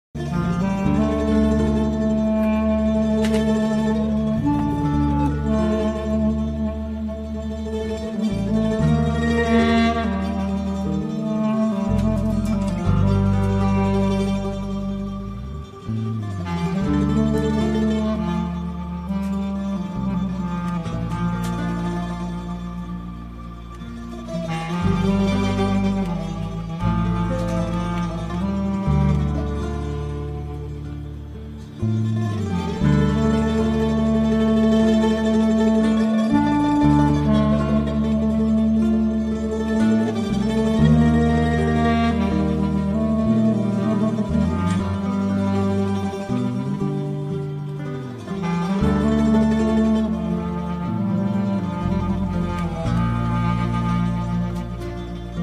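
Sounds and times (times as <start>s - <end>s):
acoustic instrumental background music: 0.0s - 55.4s.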